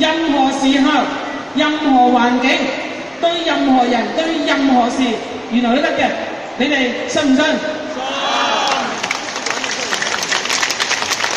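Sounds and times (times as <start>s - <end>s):
speech: 0.0s - 8.2s
audience applause: 8.4s - 11.3s.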